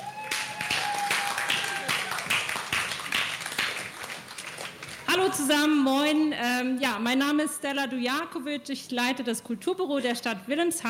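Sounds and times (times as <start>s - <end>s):
audience applause: 0.0s - 5.1s
speech: 5.3s - 10.8s.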